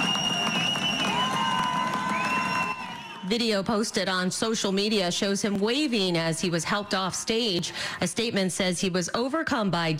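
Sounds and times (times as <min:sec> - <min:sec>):
concert crowd cheering and shouting: 0:00.0 - 0:03.6
speech: 0:03.3 - 0:09.9.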